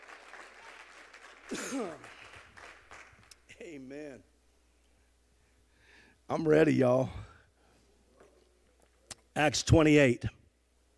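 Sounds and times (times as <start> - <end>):
audience hand clapping: 0.0 - 3.6
speech: 1.5 - 2.2, 3.6 - 4.3, 6.3 - 7.2, 9.4 - 10.4.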